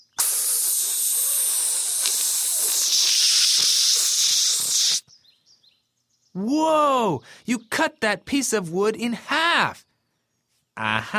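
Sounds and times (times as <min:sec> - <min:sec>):
pressurized Coca-Cola jet spraying out: 0:00.0 - 0:05.0
speech: 0:06.4 - 0:09.9, 0:10.8 - 0:11.1.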